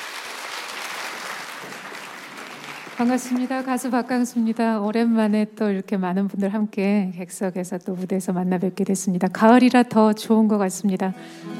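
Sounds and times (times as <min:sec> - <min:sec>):
audience applause: 0:00.0 - 0:04.4
speech: 0:03.0 - 0:11.5.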